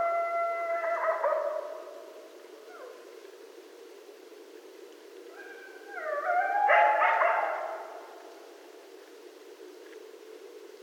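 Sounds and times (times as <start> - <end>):
several coyotes howling: 0.0 - 1.9, 5.3 - 8.0.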